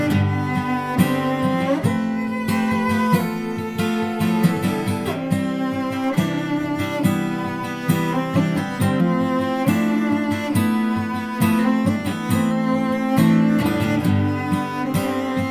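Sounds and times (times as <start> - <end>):
cello: 0.0 - 15.4
guitar: 0.0 - 15.4.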